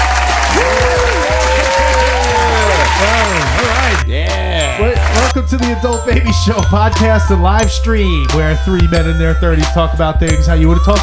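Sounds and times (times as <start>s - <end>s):
canned audience-applause sound effect: 0.0s - 5.4s
speech: 5.4s - 11.0s.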